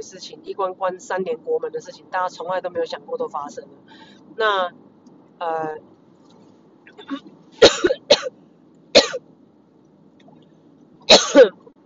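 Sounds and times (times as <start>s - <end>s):
speech: 0.0s - 5.9s, 7.0s - 8.4s, 11.1s - 11.6s
low steady car hum: 0.0s - 11.8s
person coughing after choking on own saliva while driving: 7.0s - 8.3s, 9.0s - 9.2s, 11.1s - 11.6s.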